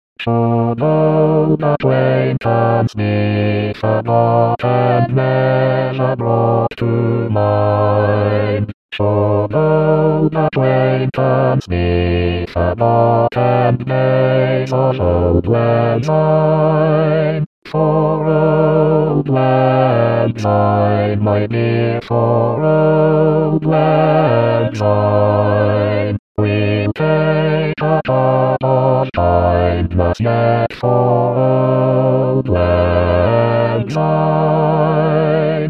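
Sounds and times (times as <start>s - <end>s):
bass: 0.3s - 35.4s.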